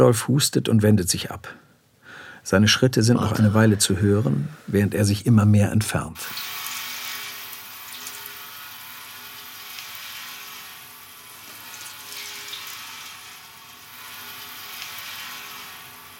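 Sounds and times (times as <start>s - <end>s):
speech: 0.0s - 1.6s, 2.4s - 6.6s
low hum: 3.1s - 5.0s
flesh burning in a fire: 6.2s - 16.1s.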